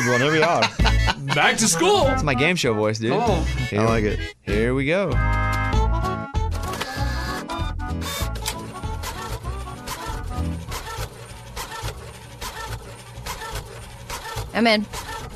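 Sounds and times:
laughter: 0.0s - 1.8s
speech: 0.1s - 5.5s, 14.6s - 15.0s
printer motors whirring pulling paper through: 6.6s - 15.3s.

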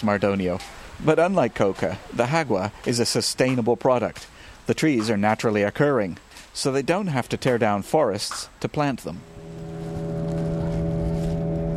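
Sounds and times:
speech: 0.0s - 9.4s
boat motor droning as a loaded boat heads upstream on a river: 9.2s - 11.7s.

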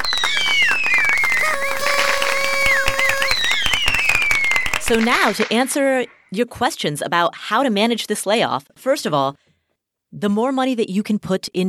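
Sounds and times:
shrill sliding whistles: 0.0s - 5.4s
crowd applauding: 0.0s - 6.1s
speech: 4.9s - 9.5s, 10.1s - 11.6s.

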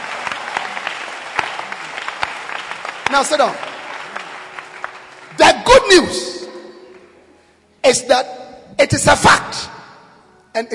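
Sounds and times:
audience clapping hands: 0.0s - 7.2s
speech: 3.1s - 3.7s, 5.4s - 6.3s, 7.9s - 9.8s, 10.6s - 10.7s.

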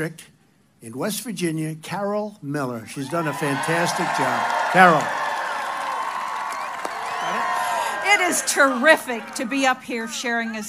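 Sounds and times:
speech: 0.0s - 5.2s, 8.2s - 10.6s
rally crowd cheering: 2.9s - 10.6s
high whoops and whistles: 5.6s - 8.0s.

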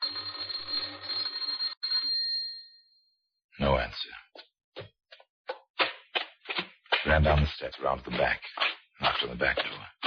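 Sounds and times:
electric doorbell ringing: 0.0s - 3.0s
speech: 3.6s - 4.2s, 7.1s - 10.0s.

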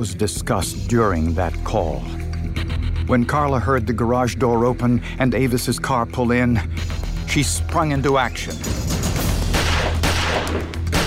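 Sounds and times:
speech: 0.0s - 2.2s, 3.1s - 8.9s
gunshots: 9.2s - 11.0s.

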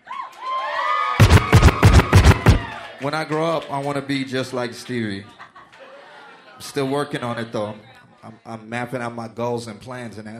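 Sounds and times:
crowd cheering with whoops and shouts: 0.0s - 3.9s
speech: 3.0s - 5.4s, 6.6s - 10.3s.

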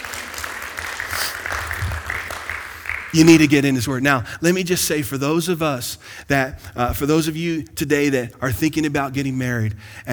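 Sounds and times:
audience applause: 0.0s - 3.4s
speech: 3.1s - 10.1s.

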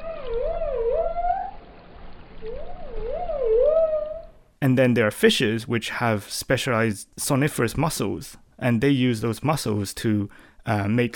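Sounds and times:
dolphin whistles: 0.0s - 1.6s, 2.4s - 4.4s
speech: 4.6s - 11.1s.

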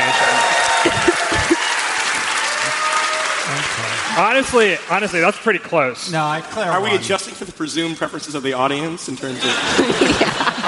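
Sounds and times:
audience applause at a live debate: 0.0s - 5.9s
laughter: 0.8s - 1.7s, 9.2s - 10.6s
speech: 4.2s - 10.6s.

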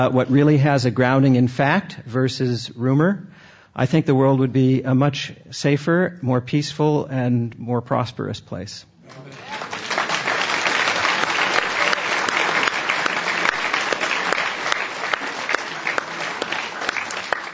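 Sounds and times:
speech: 0.0s - 9.8s
audience applause: 9.0s - 17.5s.

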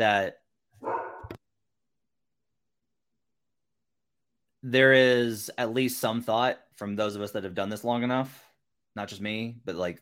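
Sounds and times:
speech: 0.0s - 0.4s, 4.6s - 8.4s, 9.0s - 9.9s
dog barking: 0.8s - 1.4s.

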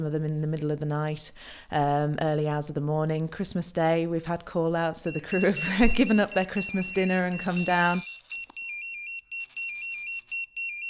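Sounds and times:
speech: 0.0s - 8.1s
lifeboat crew pager alert tone: 5.1s - 10.8s.

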